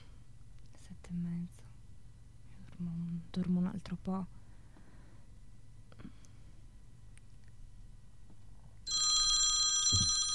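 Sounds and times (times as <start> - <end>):
speech: 2.8 - 4.4
telephone ringing with a bright electronic trill: 8.9 - 10.3.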